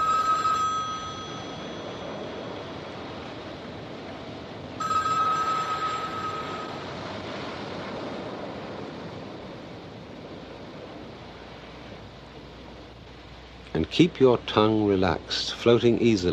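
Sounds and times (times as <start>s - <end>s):
telephone bell ringing: 0.0s - 2.9s, 4.8s - 7.0s
rushing noise: 0.0s - 16.3s
speech: 13.8s - 16.3s.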